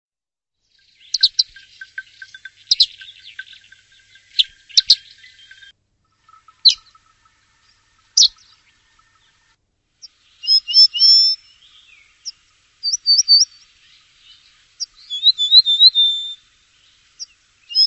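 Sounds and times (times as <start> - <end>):
bird whistling: 1.0 - 7.4, 8.1 - 9.2, 10.4 - 13.6, 14.3 - 16.4, 17.7 - 17.8.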